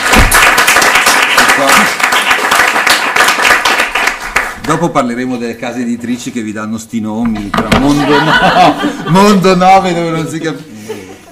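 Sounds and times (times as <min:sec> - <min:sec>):
audience applause: 0:00.0 - 0:04.6
speech: 0:04.7 - 0:10.8
laughter: 0:07.3 - 0:09.6, 0:10.7 - 0:11.3.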